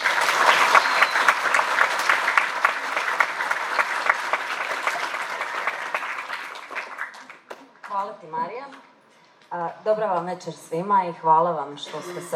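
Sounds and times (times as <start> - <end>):
audience applause at a handbook launch evening: 0.0 - 8.1
speech: 9.9 - 12.3.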